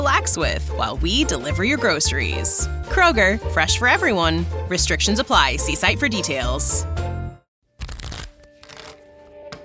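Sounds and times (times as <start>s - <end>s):
speech: 0.1s - 7.0s
deck of playing cards shuffling: 7.8s - 9.2s.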